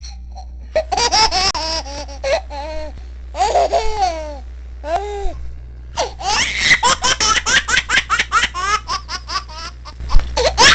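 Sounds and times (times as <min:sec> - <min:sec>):
baby laughing: 0:00.8 - 0:02.7, 0:03.4 - 0:04.3, 0:06.0 - 0:10.7.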